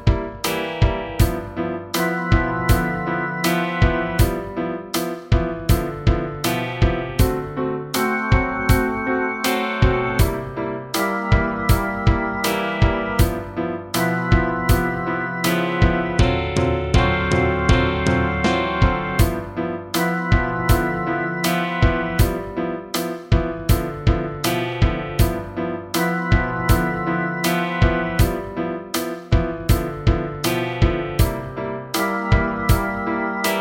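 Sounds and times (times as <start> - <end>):
blues in G without bass: 0.0 - 33.6.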